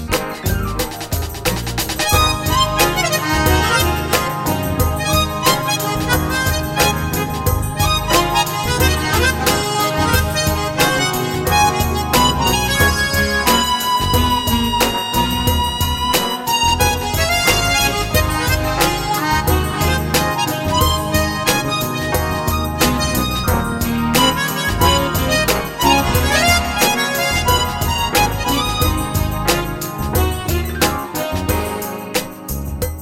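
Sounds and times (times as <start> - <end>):
blues music: 0.0 - 33.0.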